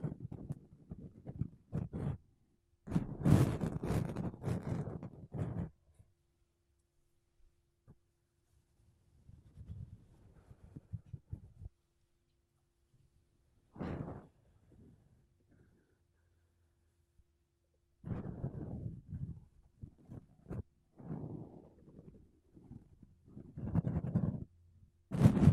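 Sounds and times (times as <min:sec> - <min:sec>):
makeup brushes and a sponge brushing across a microphone: 0:00.0 - 0:02.2, 0:02.9 - 0:05.8, 0:09.3 - 0:11.7, 0:13.8 - 0:15.0, 0:18.0 - 0:25.5.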